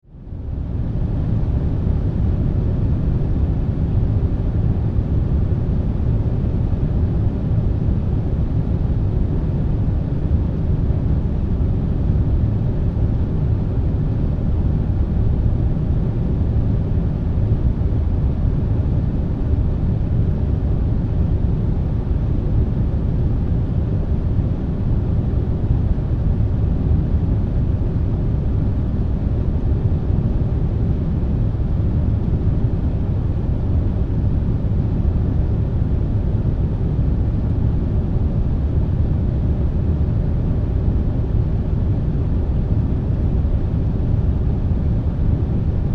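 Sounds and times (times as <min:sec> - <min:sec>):
large industrial factory air conditioning unit: 0:00.0 - 0:45.9.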